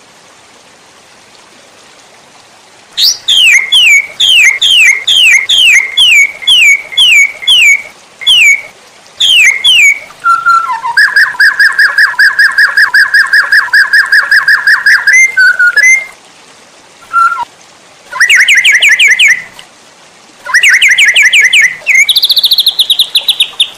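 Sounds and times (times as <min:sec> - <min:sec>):
white-rumped shama song: 0:03.0 - 0:16.1, 0:17.1 - 0:17.5, 0:18.1 - 0:19.5, 0:20.4 - 0:23.7.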